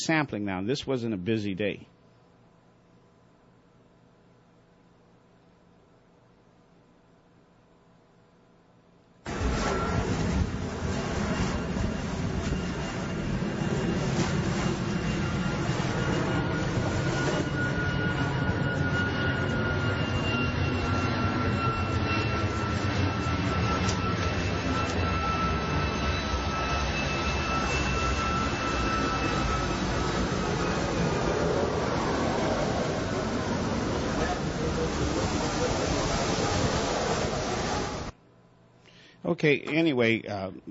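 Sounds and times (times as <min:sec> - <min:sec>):
speech: 0:00.0 - 0:02.0, 0:39.4 - 0:40.6
roar of aircraft passing overhead: 0:09.3 - 0:38.1.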